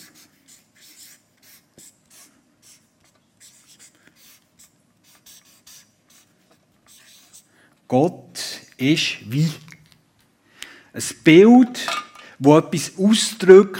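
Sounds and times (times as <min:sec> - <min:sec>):
hand-drawing and writing strokes drawing a rectangle: 0:00.0 - 0:07.5
speech: 0:07.9 - 0:09.7, 0:11.0 - 0:13.7.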